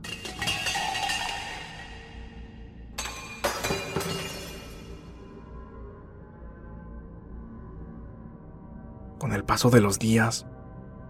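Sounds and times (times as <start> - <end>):
glass breaking in kitchen: 0.0 - 2.4, 3.0 - 5.2
clinking debris: 0.0 - 5.2
objects thrown and smashing in kitchen: 0.0 - 5.2
speech: 9.4 - 10.6.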